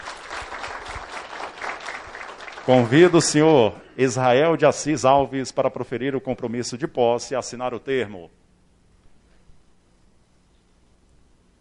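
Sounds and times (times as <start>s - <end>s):
group applauding: 0.0s - 3.8s
speech: 2.7s - 8.4s.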